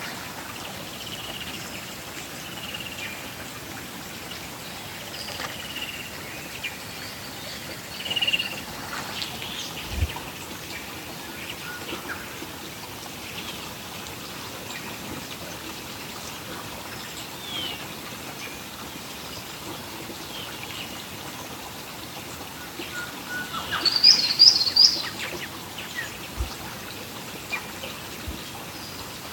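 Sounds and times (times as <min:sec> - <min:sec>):
river in a rainforest: 0:00.0 - 0:29.3.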